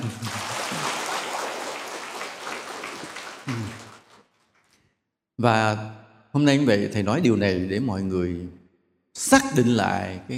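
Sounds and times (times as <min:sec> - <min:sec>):
laughter: 0:00.0 - 0:04.0
crowd applause: 0:00.0 - 0:04.3
speech: 0:03.5 - 0:03.8, 0:05.4 - 0:08.6, 0:09.2 - 0:10.3.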